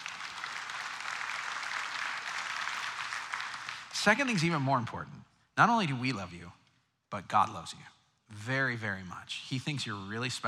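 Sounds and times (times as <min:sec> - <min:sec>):
audience clapping: 0:00.0 - 0:04.9
speech: 0:04.0 - 0:10.4.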